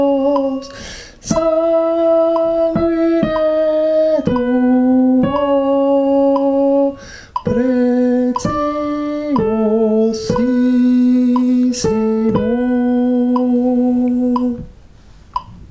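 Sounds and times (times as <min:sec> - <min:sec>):
soprano singing a sacred choral piece: 0:00.0 - 0:14.8.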